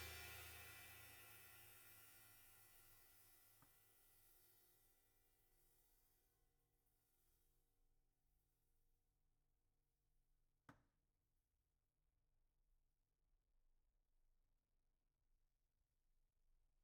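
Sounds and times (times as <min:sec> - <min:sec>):
open hi-hat: 0:00.0 - 0:02.6.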